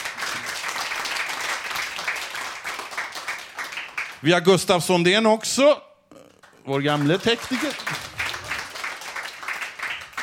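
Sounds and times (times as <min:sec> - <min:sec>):
audience applause: 0:00.0 - 0:04.2, 0:06.4 - 0:10.2
speech: 0:04.2 - 0:05.9, 0:06.6 - 0:08.0.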